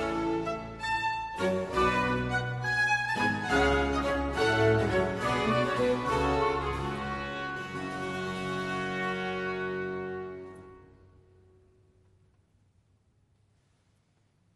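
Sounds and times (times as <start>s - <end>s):
semi-opera first act tune jig: 0.0s - 11.4s.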